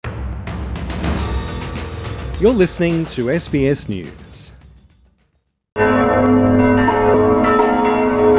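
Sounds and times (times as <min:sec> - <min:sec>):
speech: 0:02.4 - 0:04.6
church bells ringing across the Czech Republic: 0:05.8 - 0:08.3.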